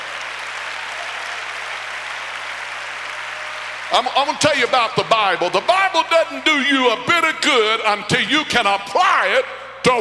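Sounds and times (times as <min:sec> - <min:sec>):
people clapping their hands: 0:00.0 - 0:05.9
speech: 0:03.9 - 0:09.9.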